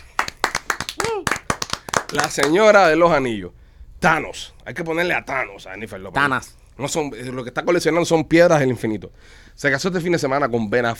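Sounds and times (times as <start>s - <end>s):
applause: 0.0s - 2.6s
speech: 2.1s - 10.9s.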